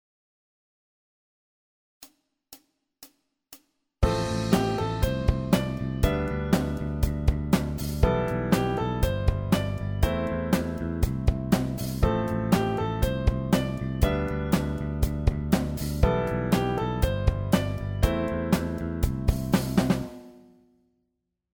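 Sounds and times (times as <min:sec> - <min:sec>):
bass playing non-root notes: 0:04.0 - 0:20.1.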